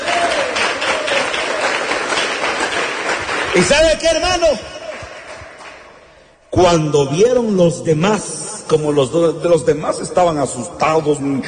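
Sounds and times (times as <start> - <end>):
crowd applauding: 0.0 - 6.2
speech: 3.6 - 4.8, 6.5 - 11.4.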